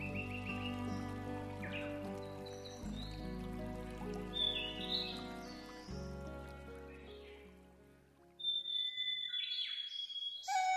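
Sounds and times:
birds singing: 0:00.0 - 0:07.6, 0:08.4 - 0:10.6.

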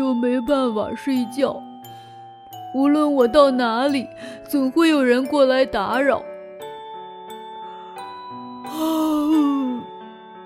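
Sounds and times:
speech: 0:00.1 - 0:01.7, 0:02.7 - 0:06.3
person yawning: 0:08.7 - 0:09.9.

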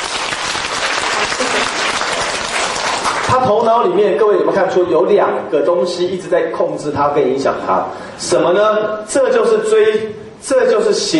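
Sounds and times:
audience applause: 0:00.0 - 0:03.4
speech: 0:03.3 - 0:11.1.

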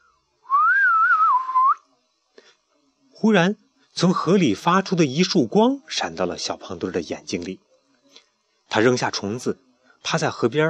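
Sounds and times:
person whistling a cheerful phrase: 0:00.5 - 0:01.8
speech: 0:03.2 - 0:07.6, 0:08.7 - 0:10.6.

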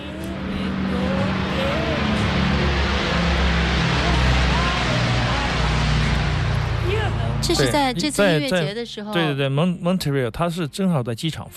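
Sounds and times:
low-flying airliner roaring overhead: 0:00.0 - 0:08.9
speech: 0:07.5 - 0:11.5.

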